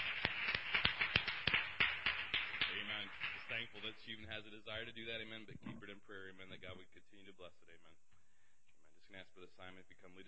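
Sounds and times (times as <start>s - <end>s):
scattered hand clapping in a church service: 0.0s - 4.1s
speech: 3.9s - 8.2s, 9.1s - 10.2s.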